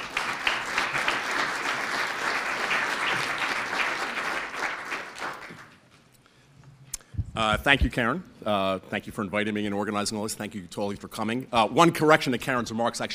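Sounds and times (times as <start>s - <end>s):
audience applause welcoming a speaker at a Wisconsin event: 0.0s - 5.8s
speech: 7.4s - 13.1s.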